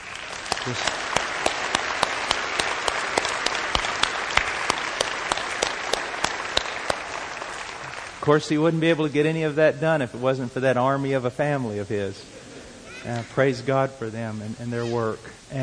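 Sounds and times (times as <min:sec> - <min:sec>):
audience applause: 0:00.0 - 0:08.6
speech: 0:00.6 - 0:01.0, 0:08.2 - 0:12.4, 0:13.0 - 0:15.6.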